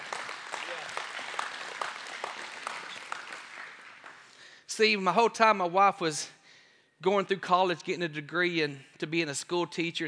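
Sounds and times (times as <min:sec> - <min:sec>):
audience clapping hands: 0:00.0 - 0:04.6
speech: 0:04.8 - 0:06.4, 0:07.0 - 0:10.0.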